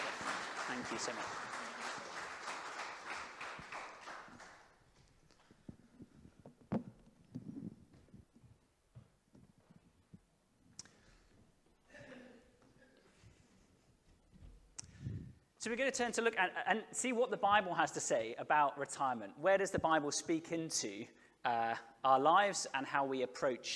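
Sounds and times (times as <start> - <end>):
audience applause: 0.0 - 4.9
speech: 0.8 - 1.5, 15.6 - 23.7.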